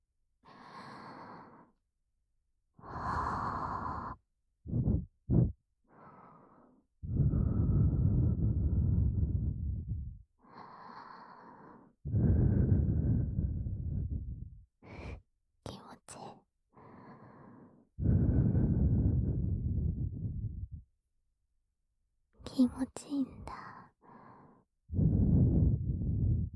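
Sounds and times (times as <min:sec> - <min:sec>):
gentle breath blowing into the ear: 0:02.8 - 0:15.2, 0:16.8 - 0:20.8, 0:23.5 - 0:26.5
speech: 0:22.6 - 0:23.4.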